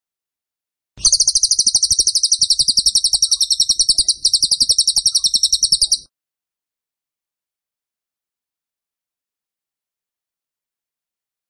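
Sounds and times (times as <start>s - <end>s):
bird singing a high rattling trill: 1.0s - 6.1s.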